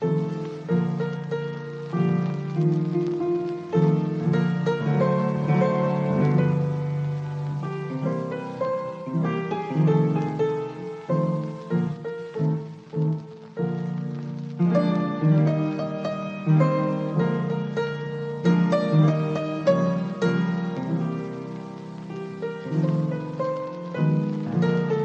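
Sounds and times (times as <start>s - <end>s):
piano piece: 0.0s - 25.0s.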